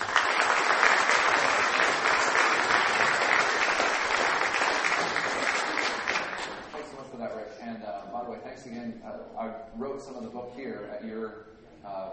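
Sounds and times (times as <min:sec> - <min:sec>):
crowd applause at a Pepperdine event welcoming a speaker: 0:00.0 - 0:06.8
speech: 0:08.9 - 0:12.1.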